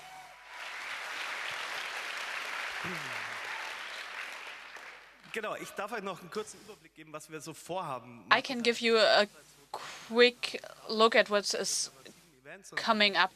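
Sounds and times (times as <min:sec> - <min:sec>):
audience applause: 0:00.0 - 0:05.6
speech: 0:02.8 - 0:03.2, 0:05.3 - 0:13.3.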